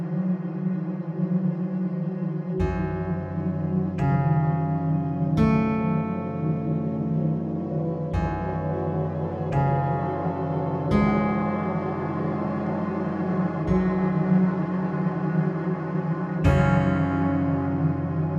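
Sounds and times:
ambient music on two guitars: 0.1 - 18.3.

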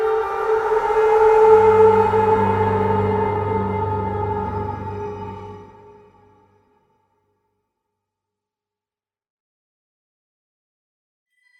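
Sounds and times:
tense music: 0.0 - 6.6.

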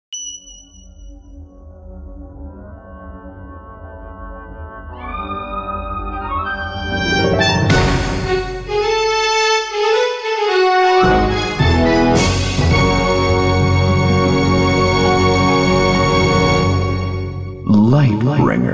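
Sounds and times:
game title music: 0.3 - 18.6.

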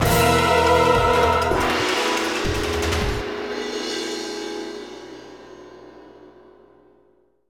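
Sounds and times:
action music ending: 0.0 - 5.7.

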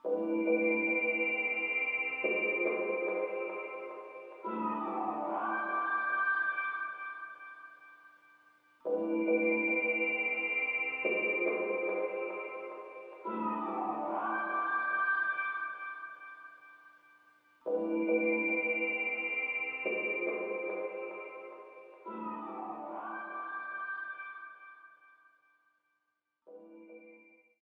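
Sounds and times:
background music: 0.0 - 8.0, 8.8 - 16.6, 17.6 - 24.9.

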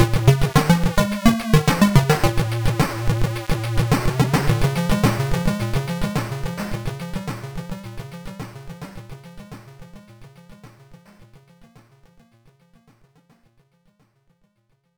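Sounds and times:
boss theme music: 0.0 - 9.0.

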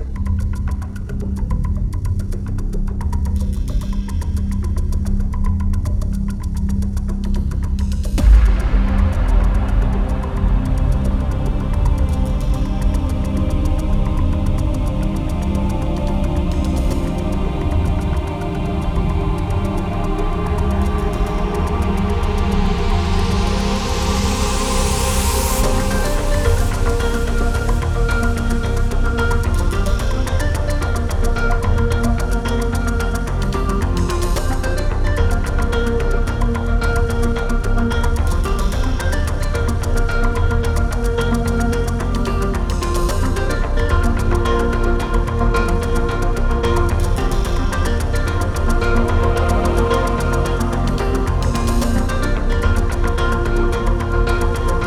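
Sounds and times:
cave ambience: 0.2 - 54.8.

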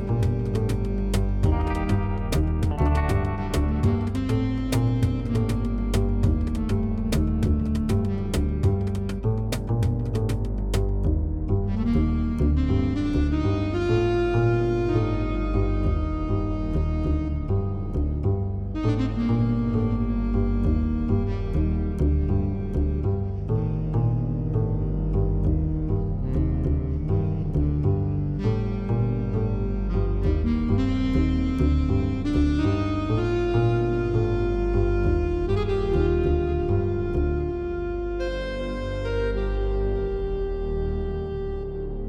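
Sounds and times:
ambient jazz: 0.0 - 42.0.

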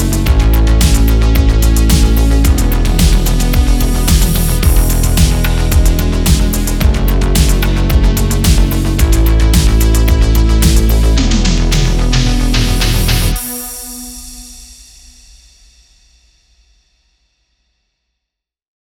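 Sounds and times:
roller coaster ride music: 0.0 - 13.5.

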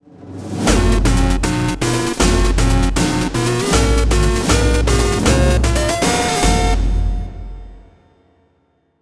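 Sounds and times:
jingle: 0.7 - 7.9.

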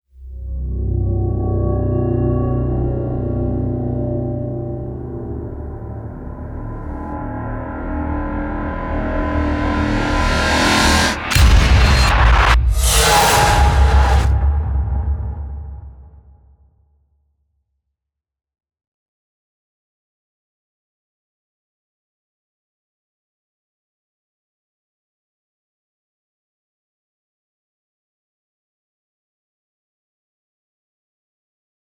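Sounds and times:
cutscene music: 0.2 - 15.8.

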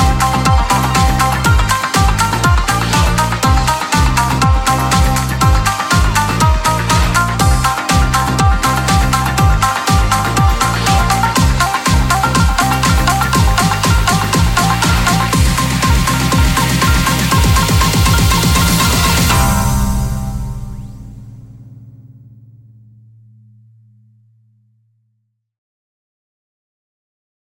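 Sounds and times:
heartbeat: 0.0 - 20.3
game music: 0.0 - 21.6.

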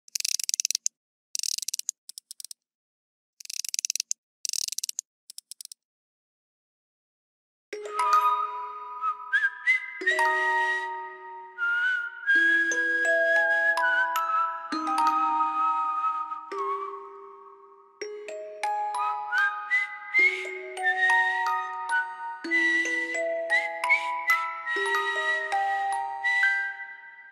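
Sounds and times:
music box: 7.8 - 11.6, 12.4 - 27.3
whistling: 7.9 - 17.8, 19.0 - 27.3.

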